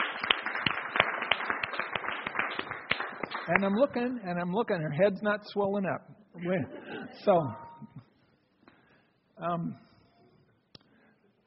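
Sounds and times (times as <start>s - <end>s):
audience applause: 0.0s - 3.8s
speech: 3.5s - 7.6s, 9.4s - 9.9s.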